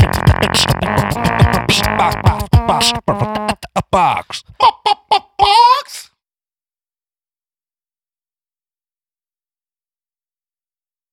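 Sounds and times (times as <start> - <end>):
beatbox: 0.0 - 5.7.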